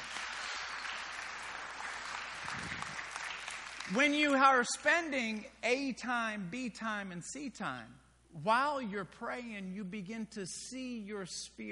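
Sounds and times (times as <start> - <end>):
crowd applauding: 0.0 - 4.1
speech: 3.9 - 11.7.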